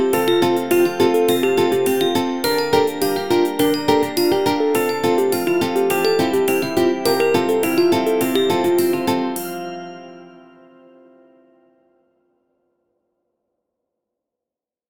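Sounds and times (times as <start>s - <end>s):
sleigh bells: 0.1s - 11.1s.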